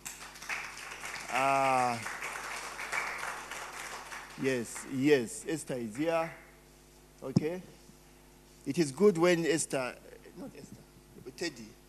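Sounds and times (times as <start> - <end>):
audience clapping: 0.0 - 5.1, 5.9 - 6.4
speech: 1.3 - 2.2, 4.4 - 6.4, 7.2 - 7.8, 8.7 - 10.8, 11.4 - 11.8.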